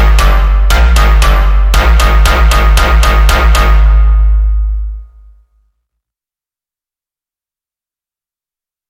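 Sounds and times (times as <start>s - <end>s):
phonk music: 0.0s - 5.2s.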